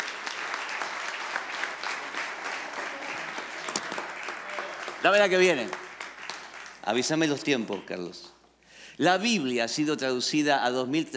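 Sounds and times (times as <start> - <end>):
audience applause: 0.0 - 8.0
speech: 5.0 - 5.8, 6.9 - 8.4, 9.0 - 11.1.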